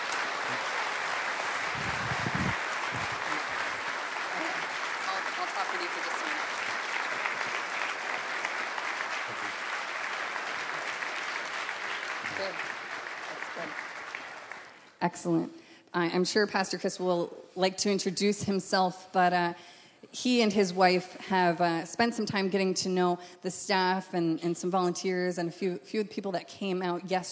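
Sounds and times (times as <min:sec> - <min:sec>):
crowd applause: 0:00.0 - 0:14.8
speech: 0:15.0 - 0:27.3.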